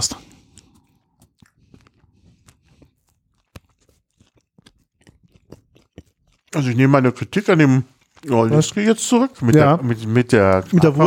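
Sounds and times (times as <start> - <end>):
biting into a German-style Krakauer sausage with skin and mustard: 0.0 - 11.0
wet chewing clicks: 0.0 - 11.0
speech: 6.5 - 11.0.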